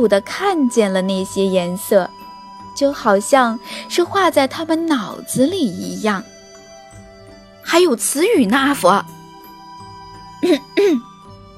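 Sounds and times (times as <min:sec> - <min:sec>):
speech: 0:00.0 - 0:02.2, 0:02.8 - 0:06.3, 0:07.6 - 0:09.2, 0:10.4 - 0:11.1
person clearing throat: 0:10.4 - 0:11.1.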